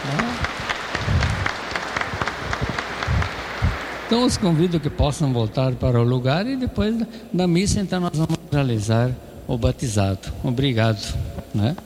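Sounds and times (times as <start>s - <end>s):
speech: 0.0s - 0.2s, 4.1s - 11.8s
audience applauding: 0.0s - 5.8s.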